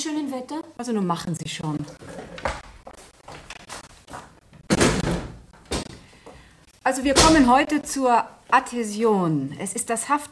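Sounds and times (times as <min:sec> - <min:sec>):
speech: 0:00.0 - 0:02.2, 0:06.9 - 0:10.3
classroom windows being shut: 0:04.6 - 0:06.0, 0:07.0 - 0:07.7.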